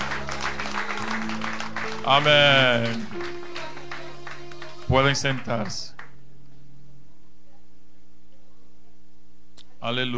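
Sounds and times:
church congregation clapping during a service: 0:00.0 - 0:06.2
speech: 0:02.0 - 0:03.3, 0:04.9 - 0:05.9, 0:09.8 - 0:10.1.

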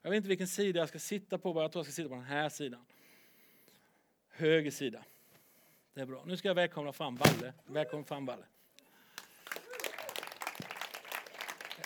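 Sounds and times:
speech: 0:00.1 - 0:03.0, 0:04.4 - 0:05.1, 0:06.0 - 0:08.5
audience applause: 0:09.2 - 0:11.8
person whooping: 0:09.5 - 0:10.3.

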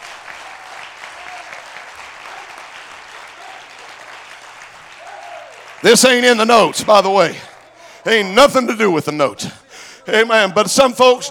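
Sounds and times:
audience clapping hands: 0:00.0 - 0:08.7
speech: 0:05.8 - 0:11.2.

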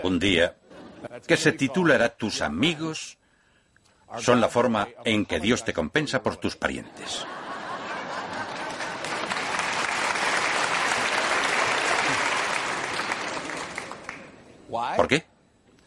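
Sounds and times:
speech: 0:00.0 - 0:03.2, 0:04.1 - 0:07.4, 0:14.7 - 0:15.3
laughter: 0:06.8 - 0:09.7, 0:11.7 - 0:12.6
applause: 0:08.3 - 0:14.4.

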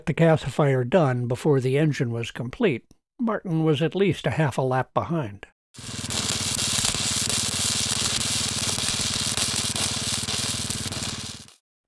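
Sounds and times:
speech: 0:00.0 - 0:06.2
welding torch crackling: 0:05.8 - 0:11.6.

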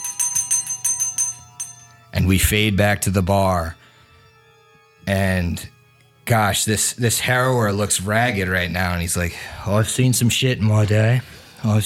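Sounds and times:
bell ringing: 0:00.0 - 0:02.0
speech: 0:02.2 - 0:03.8, 0:05.1 - 0:11.8.

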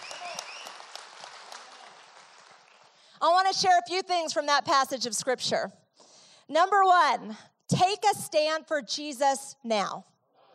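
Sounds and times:
cheers and whistle-like whoops: 0:00.0 - 0:00.8
audience applause: 0:00.0 - 0:03.0
speech: 0:03.2 - 0:05.8, 0:06.5 - 0:10.1.

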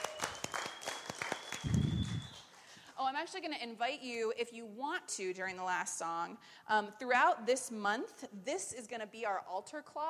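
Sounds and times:
audience clapping: 0:00.0 - 0:02.6
speech: 0:03.0 - 0:10.0.

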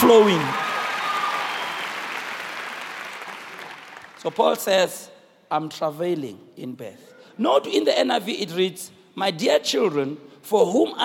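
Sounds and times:
audience clapping: 0:00.0 - 0:04.8
speech: 0:00.1 - 0:00.6, 0:04.2 - 0:11.0.

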